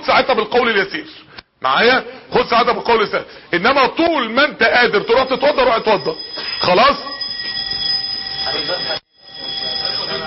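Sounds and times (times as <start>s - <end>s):
speech: 0.1s - 7.1s
fire alarm tone: 4.2s - 10.2s.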